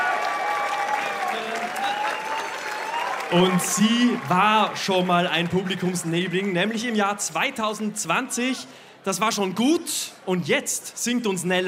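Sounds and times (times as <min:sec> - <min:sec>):
audience applause: 0:00.0 - 0:07.2
speech: 0:03.3 - 0:11.6.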